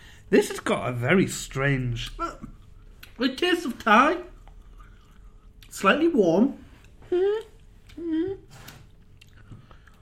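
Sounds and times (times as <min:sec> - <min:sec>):
speech: 0:00.3 - 0:02.2, 0:03.2 - 0:04.3, 0:05.7 - 0:08.6
person chewing galangal: 0:02.0 - 0:05.8, 0:06.6 - 0:10.0
short hummed voice sounds: 0:07.0 - 0:08.6.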